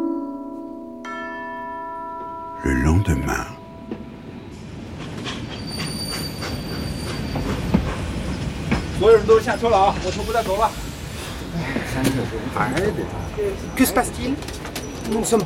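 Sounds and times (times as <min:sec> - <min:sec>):
speech: 0:02.6 - 0:03.6, 0:09.0 - 0:10.9, 0:11.6 - 0:15.4
train rolling along rails: 0:04.6 - 0:13.7.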